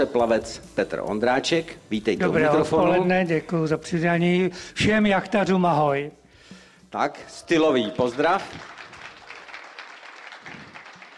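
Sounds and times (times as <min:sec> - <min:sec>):
speech: 0:00.0 - 0:06.2, 0:06.9 - 0:08.7
audience applause: 0:08.0 - 0:11.1.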